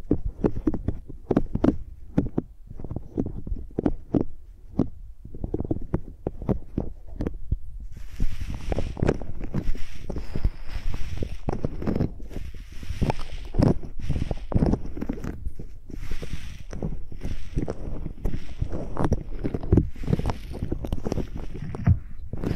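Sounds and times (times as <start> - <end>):
microphones scribbled like pencils thumping and scraping: 0.0 - 22.5
steady hiss of scratching: 7.9 - 22.5.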